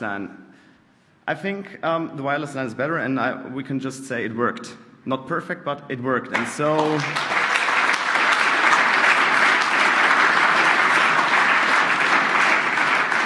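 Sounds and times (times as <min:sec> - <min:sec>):
speech: 0:00.0 - 0:00.4, 0:01.3 - 0:07.3
audience applause: 0:06.4 - 0:13.2.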